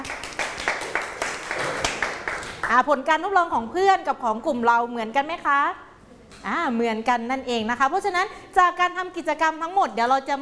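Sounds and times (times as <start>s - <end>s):
classroom clapping: 0.0s - 2.8s
speech: 2.7s - 10.4s.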